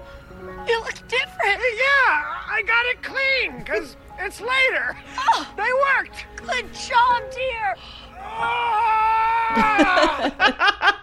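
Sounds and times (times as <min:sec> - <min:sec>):
speech: 0:00.8 - 0:11.0
man wailing in a commercial: 0:08.2 - 0:10.4
laughter: 0:09.4 - 0:11.0.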